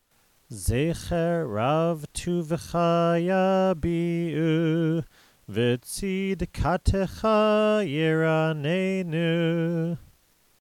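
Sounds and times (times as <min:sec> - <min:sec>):
prayer chanting: 0:00.5 - 0:10.0.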